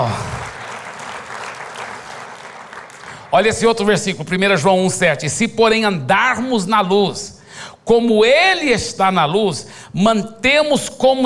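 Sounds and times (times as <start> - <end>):
audience applause: 0.0 - 3.7
speech: 3.3 - 7.3, 7.9 - 11.2.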